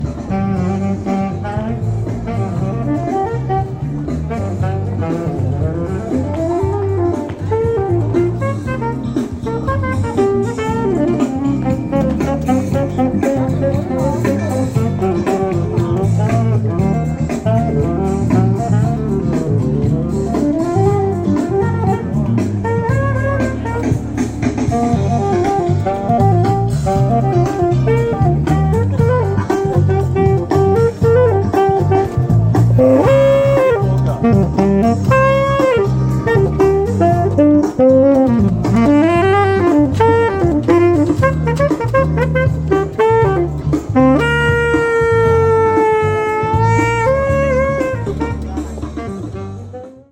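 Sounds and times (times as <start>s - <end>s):
saxophone: 0.0s - 50.1s.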